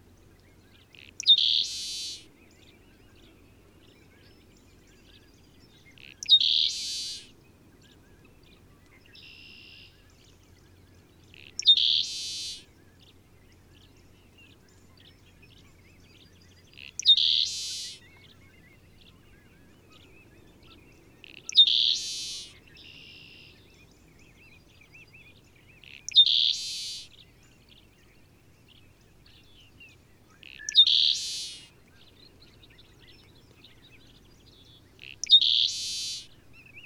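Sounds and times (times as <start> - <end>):
Seaside Sparrow singing: 0.5 - 7.3, 7.9 - 36.8.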